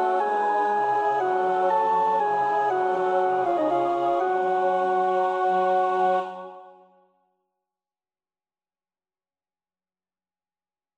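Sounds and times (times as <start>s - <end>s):
alto choir part practice singing: 0.0s - 6.9s.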